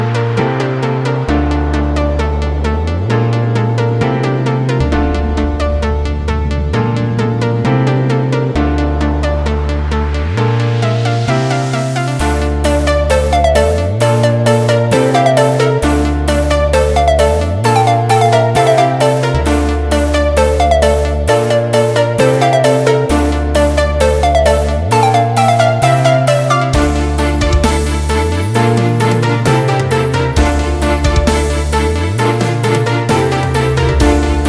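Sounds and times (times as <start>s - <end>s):
organ track: 0.1s - 34.4s.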